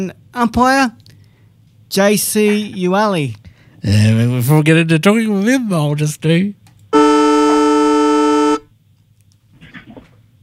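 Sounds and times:
speech: 0.0 - 1.0, 1.9 - 7.0
football ground siren blaring: 7.0 - 8.6.

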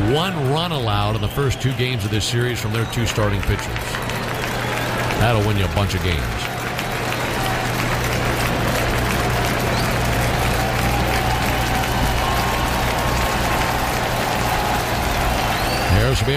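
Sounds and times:
large stadium crowd cheering and applauding: 0.0 - 16.3
speech: 0.1 - 4.2, 5.2 - 6.6, 16.2 - 16.3.

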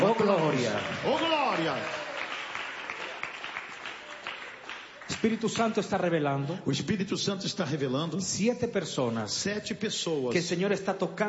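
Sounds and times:
church congregation clapping: 0.0 - 6.3
speech: 5.2 - 11.2.

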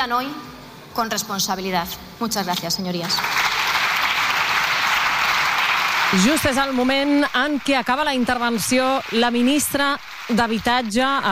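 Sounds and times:
speech: 0.0 - 3.4, 6.1 - 11.3
applause from Socialist benches in the Spanish Congress chamber: 3.0 - 11.3.

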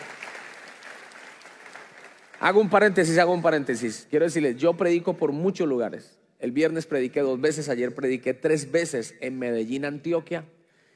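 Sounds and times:
applause from a church congregation after a scripture reading: 0.0 - 3.9
speech: 2.4 - 10.6.

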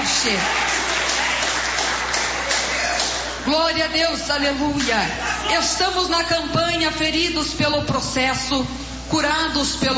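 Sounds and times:
church congregation clapping in worship of Jesus: 0.0 - 3.5
speech: 0.2 - 0.7, 3.4 - 9.9.

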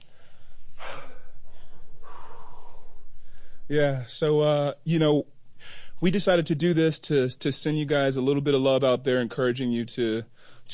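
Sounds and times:
band members catching their breath, panting: 0.0 - 3.6
speech: 3.7 - 10.7.

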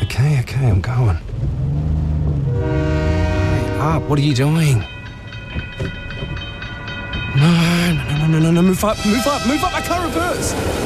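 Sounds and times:
speech: 0.2 - 1.3, 3.8 - 5.0, 7.4 - 10.8
train passing a level crossing: 2.2 - 10.8
train horn blast: 2.5 - 4.5, 8.9 - 10.4
level crossing ringing tones: 3.7 - 10.5.

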